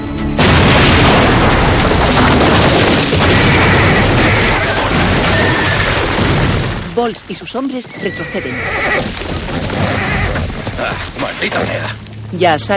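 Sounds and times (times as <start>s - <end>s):
dynamite explosion in a tunnel after being shot with a gun: 0.4s - 7.1s, 8.9s - 11.8s
speech: 7.0s - 9.6s, 10.8s - 12.7s.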